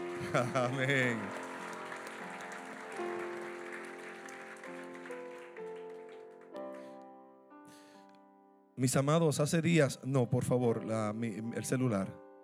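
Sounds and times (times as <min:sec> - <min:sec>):
laughter: 0:00.0 - 0:03.7
audience applause: 0:00.0 - 0:07.0
speech: 0:00.3 - 0:01.4, 0:08.8 - 0:12.2.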